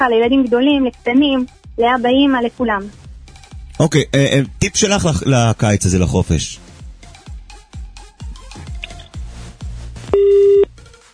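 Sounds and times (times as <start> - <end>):
speech: 0.0 - 3.0, 3.8 - 6.6
telephone busy signal: 10.2 - 10.7.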